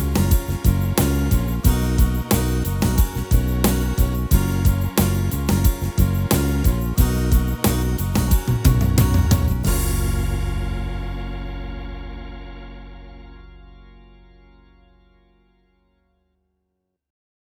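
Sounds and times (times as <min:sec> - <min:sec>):
pop and acoustic rock style on Yamaha Tyros3 keyboard: 0:00.0 - 0:13.1.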